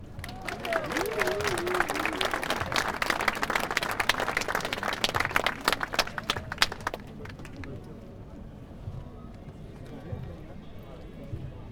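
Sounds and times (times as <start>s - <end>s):
applause: 0.0s - 7.8s.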